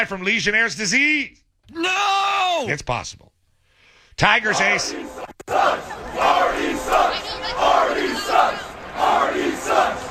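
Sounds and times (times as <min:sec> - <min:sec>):
speech: 0:00.0 - 0:03.4, 0:04.2 - 0:05.5
baseball crowd chanting an insult at an opposing pitcher: 0:04.3 - 0:10.0.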